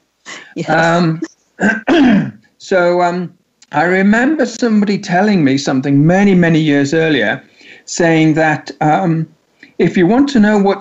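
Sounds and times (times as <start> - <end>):
speech: 0.6 - 10.7
rough throat clearing: 0.8 - 2.4.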